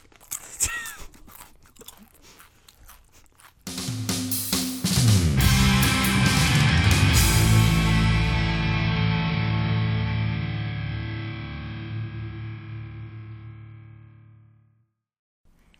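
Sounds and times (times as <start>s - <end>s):
chip being bitten and eaten: 0.0s - 4.0s
podcast music: 3.7s - 14.8s.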